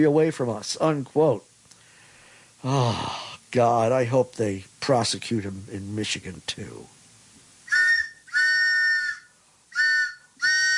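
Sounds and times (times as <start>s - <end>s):
speech: 0.0s - 1.5s, 2.6s - 7.0s
train whistle blasts: 7.7s - 10.7s.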